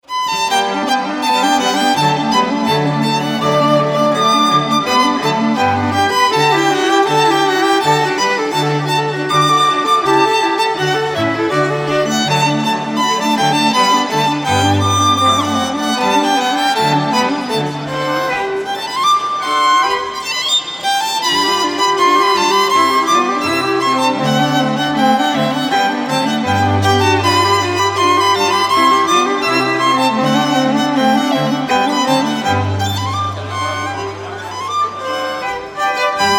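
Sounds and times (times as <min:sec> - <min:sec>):
instrumental music: 0:00.0 - 0:36.3.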